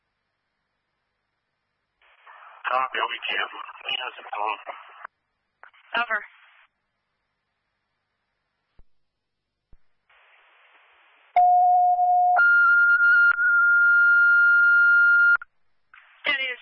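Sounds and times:
speech: 2.6 - 4.9, 6.0 - 6.4
fire dispatch cancellation tones: 11.4 - 15.4.

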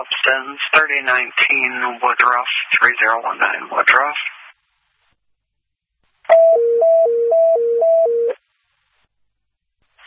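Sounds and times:
speech: 0.0 - 4.4
fire dispatch still alert tones: 6.3 - 8.4.

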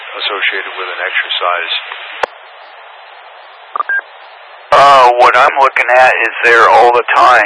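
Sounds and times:
interference like a low signal over a repeater: 0.0 - 7.4
speech: 0.2 - 2.2, 5.1 - 7.4.

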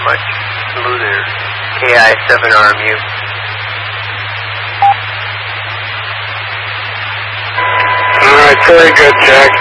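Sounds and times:
low hum: 0.0 - 9.5
radio hiss: 0.0 - 9.5
speech: 0.1 - 3.1, 8.7 - 9.5
radio roger beep tone: 4.8 - 5.0, 7.6 - 9.5.

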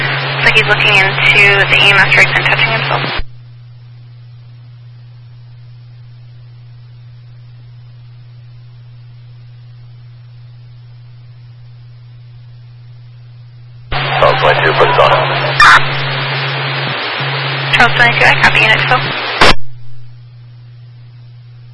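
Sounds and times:
radio dispatch test tones: 0.0 - 3.2, 13.9 - 19.6
speech: 0.5 - 3.3, 17.9 - 19.3.

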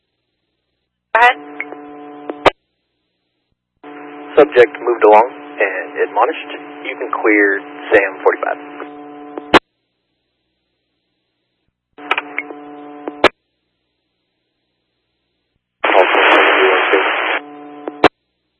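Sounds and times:
police radio static transmissions: 3.9 - 9.6, 15.8 - 18.1
speech: 4.4 - 8.8.

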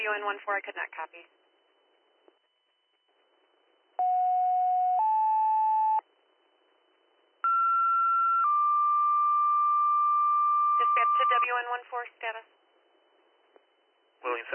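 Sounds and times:
speech: 0.1 - 1.4, 11.0 - 12.6, 14.2 - 14.5
dispatch pager tone-out tones on a fire radio channel: 4.0 - 6.0, 7.4 - 11.6.

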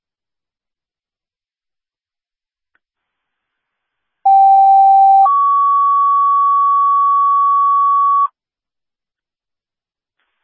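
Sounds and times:
ambulance dispatch paging tones: 4.3 - 8.3.

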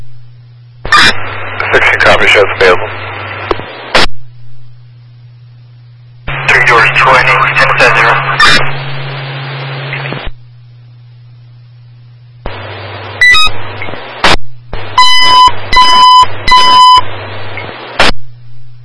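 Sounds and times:
low hum: 0.0 - 18.8
radio static: 0.8 - 4.2, 6.2 - 10.4, 12.4 - 18.3
speech: 2.0 - 3.0
high beep: 15.0 - 17.0.

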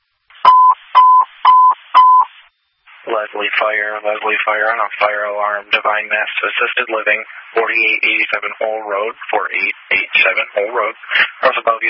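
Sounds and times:
fire dispatch alert tone beeps: 0.4 - 2.3
speech: 3.2 - 11.8.

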